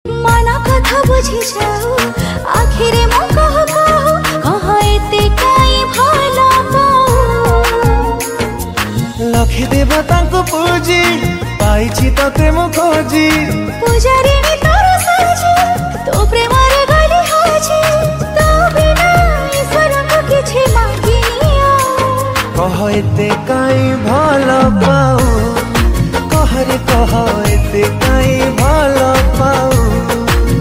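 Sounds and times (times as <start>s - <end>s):
Odia sweet romantic song ringtone: 0.5s - 30.5s.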